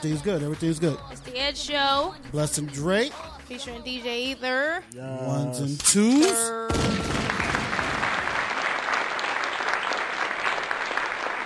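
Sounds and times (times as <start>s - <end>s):
speech: 0.0s - 7.2s
crowd applause: 6.8s - 11.4s.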